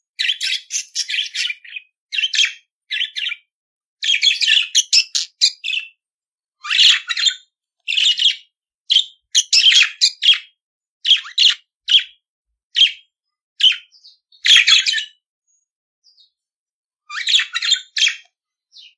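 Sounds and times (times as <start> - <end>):
budgerigar chattering song with squeaky chirps and buzzing warbles: 0.2 - 6.0, 6.6 - 12.2, 13.6 - 15.2, 17.1 - 18.9.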